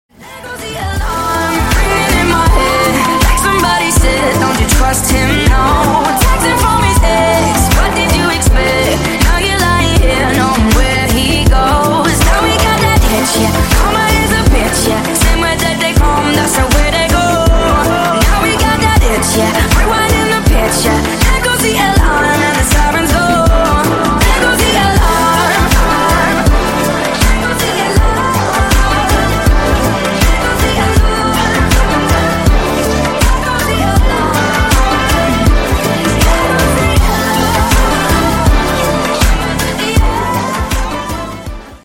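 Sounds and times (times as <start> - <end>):
remix music: 0.1 - 41.8.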